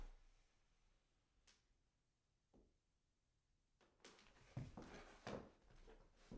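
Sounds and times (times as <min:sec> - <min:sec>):
foley footsteps walking up stairs: 0:04.5 - 0:05.5.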